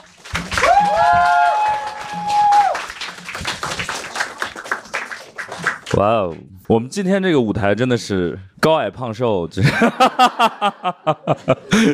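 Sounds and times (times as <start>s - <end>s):
audience applause: 0.0s - 6.0s
long high whooping cheer: 0.4s - 3.0s
speech: 6.0s - 11.9s
laughter: 9.6s - 11.9s.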